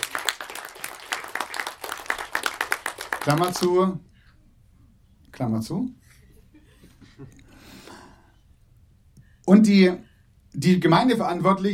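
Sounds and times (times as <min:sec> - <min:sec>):
applause: 0:00.0 - 0:03.9
speech: 0:03.2 - 0:04.1, 0:05.4 - 0:06.0, 0:07.2 - 0:07.4, 0:09.5 - 0:11.7.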